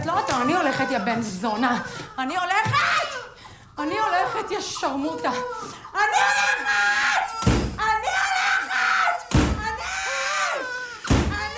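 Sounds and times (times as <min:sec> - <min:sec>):
speech: 0:00.1 - 0:03.0, 0:03.8 - 0:07.0
people shouting: 0:06.0 - 0:11.5
door slammed during a heated drama scene: 0:07.4 - 0:07.8, 0:09.3 - 0:09.8.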